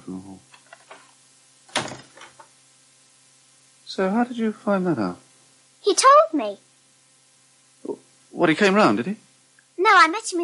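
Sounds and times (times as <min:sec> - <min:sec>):
speech: 0:00.1 - 0:00.5, 0:04.0 - 0:05.2, 0:05.9 - 0:06.7, 0:08.4 - 0:09.2, 0:09.8 - 0:10.4
door swinging shut with a firm thud: 0:01.7 - 0:02.3.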